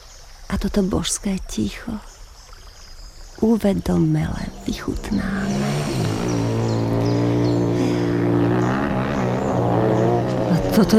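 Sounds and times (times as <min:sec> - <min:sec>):
speech: 0:00.6 - 0:02.1, 0:03.4 - 0:06.2, 0:10.8 - 0:10.9
motorcycles passing by: 0:04.3 - 0:10.9.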